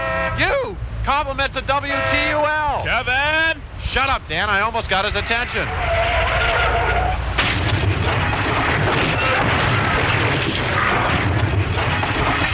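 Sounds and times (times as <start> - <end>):
speech: 0.7 - 6.5
car skidding and crashing: 5.6 - 12.5.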